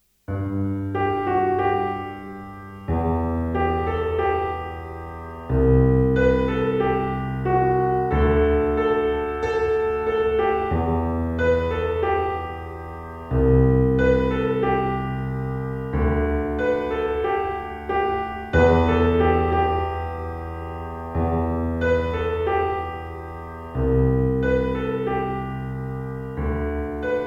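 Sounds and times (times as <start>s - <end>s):
pop piano: 0.3s - 27.2s.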